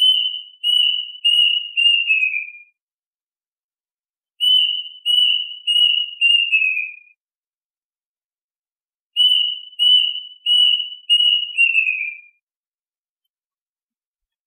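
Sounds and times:
duck whistled calls: 0:00.0 - 0:02.6, 0:04.4 - 0:07.1, 0:09.2 - 0:12.3.

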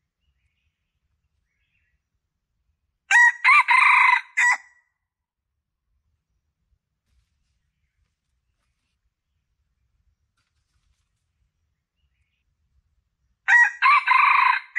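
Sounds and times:
Red junglefowl crowing: 0:03.1 - 0:04.7, 0:13.5 - 0:14.7.

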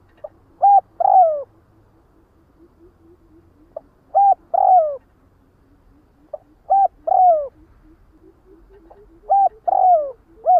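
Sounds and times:
spotted dove cooing: 0:00.0 - 0:10.5.

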